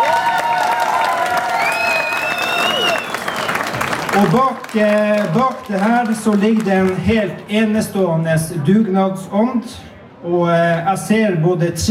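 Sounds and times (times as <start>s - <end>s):
audience applause: 0.0s - 7.0s
speech: 4.2s - 11.8s.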